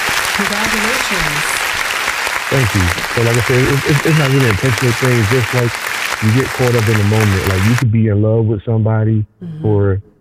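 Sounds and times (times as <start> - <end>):
audience applause: 0.0 - 7.8
speech: 0.4 - 1.6, 2.5 - 10.1
laughter: 2.5 - 10.0.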